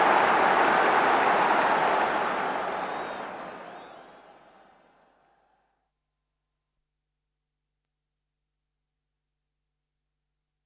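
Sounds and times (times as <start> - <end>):
football cup final crowd roaring: 0.0 - 5.6.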